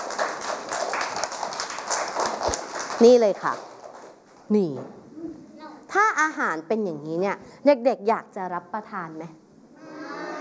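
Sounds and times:
children clapping for a guest at a children's health talk: 0:00.0 - 0:04.1
speech: 0:03.0 - 0:03.7, 0:04.5 - 0:05.0, 0:05.9 - 0:09.4.

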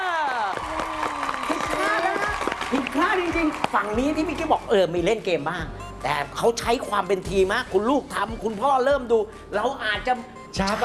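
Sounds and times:
crowd clapping: 0:00.0 - 0:04.5
speech: 0:03.0 - 0:10.8.

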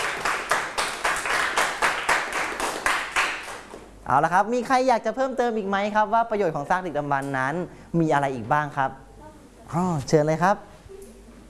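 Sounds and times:
classroom applause: 0:00.0 - 0:03.8
speech: 0:04.1 - 0:09.0, 0:09.7 - 0:10.7.

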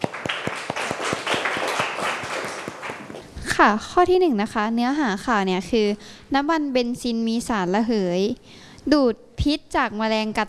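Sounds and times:
classroom applause: 0:00.0 - 0:03.2
speech: 0:03.6 - 0:10.4.

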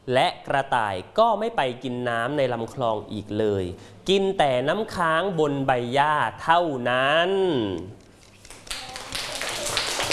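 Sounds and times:
speech: 0:00.1 - 0:08.0
room full of children clapping hands: 0:08.3 - 0:10.1.

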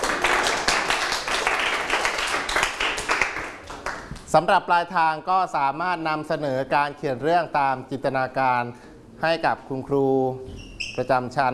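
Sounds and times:
applause for classmates: 0:00.0 - 0:04.3
speech: 0:04.3 - 0:11.5.

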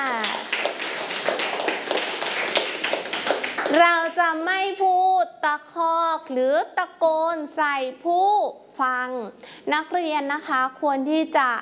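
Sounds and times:
students clapping for a classmate: 0:00.0 - 0:04.2
speech: 0:03.7 - 0:11.6.

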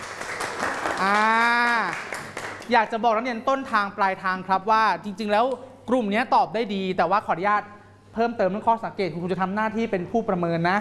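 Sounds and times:
applause: 0:00.0 - 0:02.9
speech: 0:01.0 - 0:01.4, 0:02.7 - 0:10.7.

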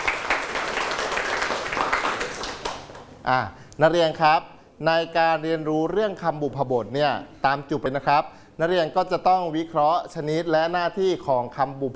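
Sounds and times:
students clapping for a group: 0:00.0 - 0:03.2
speech: 0:03.2 - 0:11.9.

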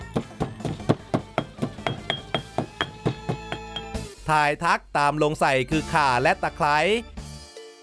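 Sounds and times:
pestle pounding ingredients in a mortar: 0:00.0 - 0:04.0
speech: 0:04.3 - 0:07.1.

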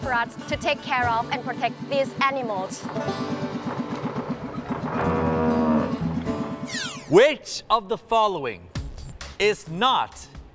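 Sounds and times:
speech: 0:00.1 - 0:03.8, 0:07.1 - 0:08.7, 0:09.4 - 0:10.3
herd of swamp buffaloes lowing: 0:03.3 - 0:06.5.

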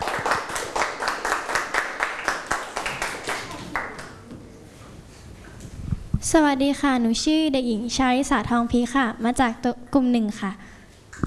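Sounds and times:
children clapping for a classmate: 0:00.0 - 0:04.3
speech: 0:06.3 - 0:10.6.

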